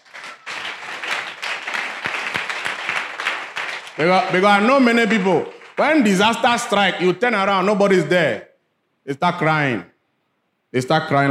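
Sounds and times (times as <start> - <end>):
audience clapping: 0.0 - 7.0
speech: 4.0 - 9.9, 10.7 - 11.2.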